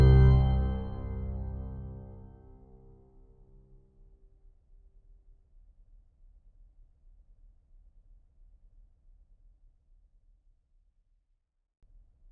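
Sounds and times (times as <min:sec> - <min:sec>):
bell tower bells: 0:00.0 - 0:02.5.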